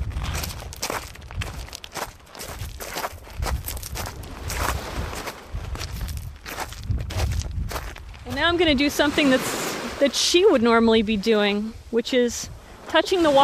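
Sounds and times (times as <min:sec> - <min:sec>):
footsteps walking over rocks on a beach: 0:00.0 - 0:08.5
speech: 0:08.4 - 0:13.4.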